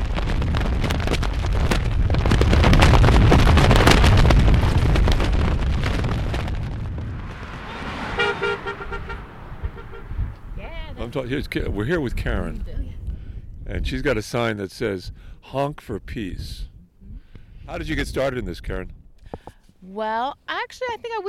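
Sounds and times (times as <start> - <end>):
flag flapping violently in desert wind: 0.0 - 7.5
speech: 11.1 - 12.8, 13.7 - 16.7, 17.7 - 21.2.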